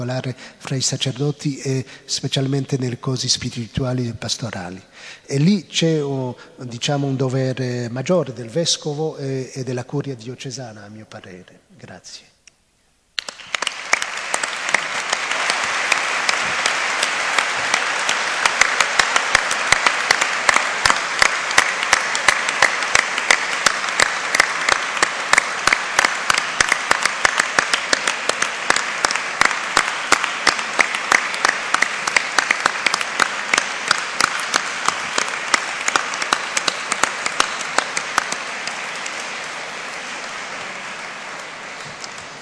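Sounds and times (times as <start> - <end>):
speech: 0.0 - 12.3
audience applause: 13.2 - 42.3.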